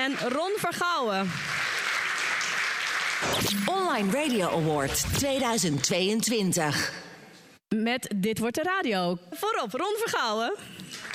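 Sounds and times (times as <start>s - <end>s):
speech: 0.0s - 1.6s, 3.2s - 7.1s, 7.7s - 10.9s
crowd applause: 0.0s - 4.8s, 10.7s - 11.1s.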